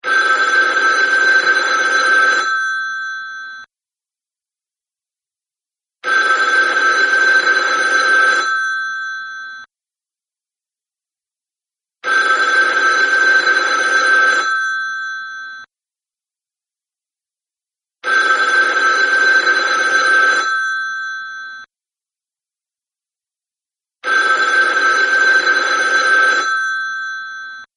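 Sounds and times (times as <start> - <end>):
central office ring: 0.0 - 3.7, 6.0 - 9.7, 12.0 - 15.7, 18.0 - 21.7, 24.0 - 27.7.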